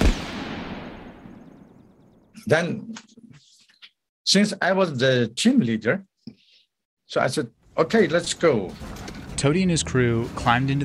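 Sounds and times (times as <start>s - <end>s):
gunshots: 0.0s - 2.1s
speech: 2.4s - 3.2s, 4.3s - 6.1s, 7.1s - 10.8s.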